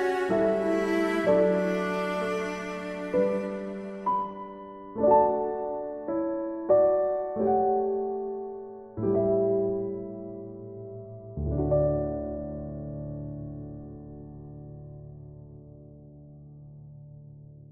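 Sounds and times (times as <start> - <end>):
cello playing instrumental Christmas music: 0.0 - 6.0
piano playing instrumental Christmas music: 0.0 - 17.6.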